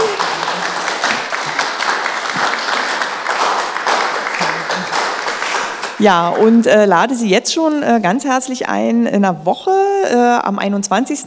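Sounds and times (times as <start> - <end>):
audience applause: 0.0 - 6.9
laughter: 0.0 - 6.9
speech: 6.0 - 11.2.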